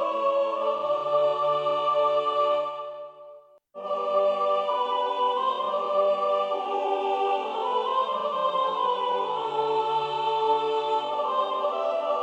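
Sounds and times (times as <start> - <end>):
soprano chanting: 0.0 - 12.2.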